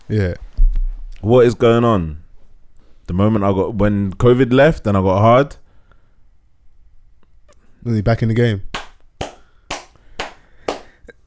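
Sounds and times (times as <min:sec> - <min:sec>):
speech: 0:00.1 - 0:00.5, 0:01.2 - 0:02.2, 0:03.1 - 0:05.6, 0:07.8 - 0:08.7
hands clapping: 0:08.8 - 0:11.1.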